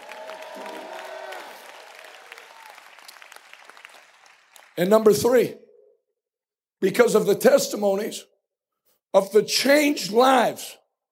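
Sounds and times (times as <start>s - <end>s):
audience clapping and shouting: 0.0s - 5.4s
speech: 4.8s - 5.6s, 6.8s - 8.3s, 9.1s - 10.8s.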